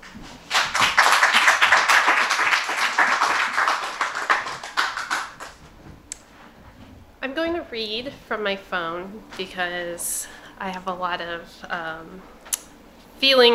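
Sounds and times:
audience clapping: 0.3s - 5.7s
speech: 7.8s - 12.4s, 13.2s - 13.5s.

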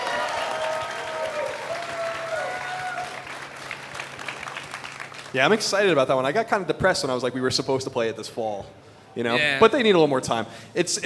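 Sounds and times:
audience clapping: 0.0s - 6.0s
speech: 5.3s - 11.0s.

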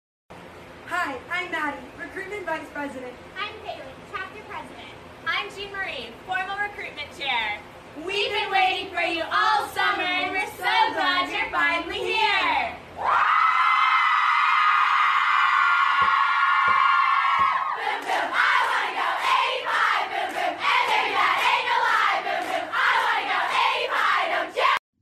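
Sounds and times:
speech: 1.1s - 13.3s
crowd of sorority girls screaming and chanting: 13.0s - 24.8s.

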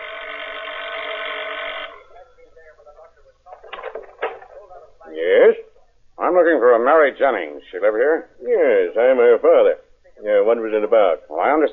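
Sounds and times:
doorbell buzzing: 0.0s - 2.2s
speech: 6.4s - 11.7s.

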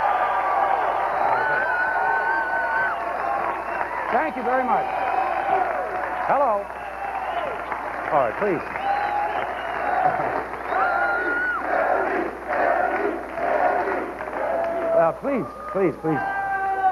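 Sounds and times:
large audience cheering and whooping: 0.0s - 16.8s
speech: 4.1s - 5.7s, 6.3s - 6.8s, 8.1s - 8.8s, 15.0s - 16.4s.

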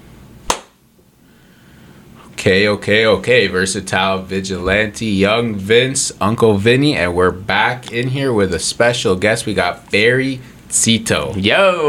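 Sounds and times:
hand clap for editing sync: 0.5s - 0.8s
speech: 2.4s - 11.8s.

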